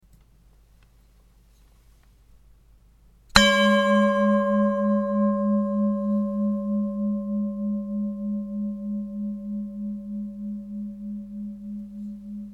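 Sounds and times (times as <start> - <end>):
singing bowl: 3.4 - 12.5.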